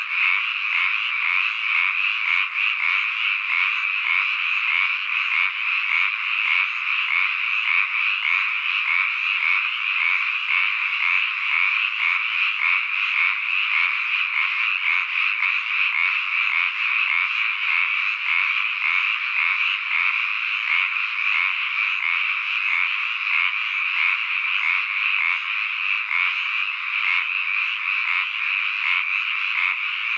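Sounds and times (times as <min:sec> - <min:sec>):
Hyla japonica calling: 0:00.0 - 0:30.1.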